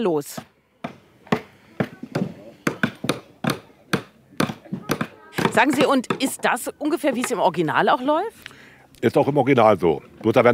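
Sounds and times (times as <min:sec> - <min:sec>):
speech: 0:00.0 - 0:00.5, 0:05.6 - 0:10.5
hammering nails into wood: 0:00.4 - 0:06.5.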